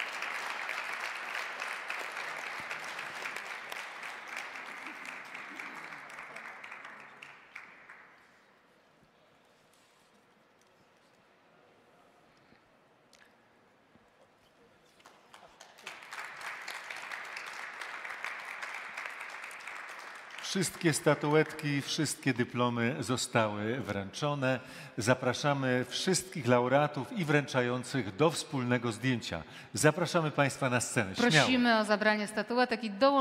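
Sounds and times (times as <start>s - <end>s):
audience applause: 0.0s - 8.6s, 15.0s - 21.8s
speech: 20.5s - 33.1s.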